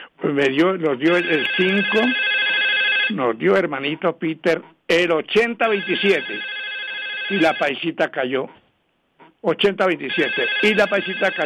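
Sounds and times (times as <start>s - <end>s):
speech: 0.2s - 2.2s, 3.1s - 6.5s, 7.3s - 8.6s, 9.4s - 11.4s
telephone ringing with a steady high electronic tone: 1.0s - 3.5s, 5.6s - 7.9s, 10.0s - 11.4s.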